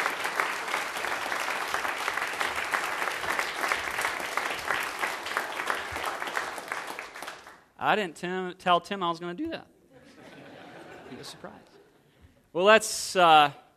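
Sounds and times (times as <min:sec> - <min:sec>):
audience clapping hands: 0:00.0 - 0:07.8
speech: 0:07.8 - 0:09.7, 0:11.1 - 0:11.7, 0:12.5 - 0:13.6
laughter: 0:09.9 - 0:12.2.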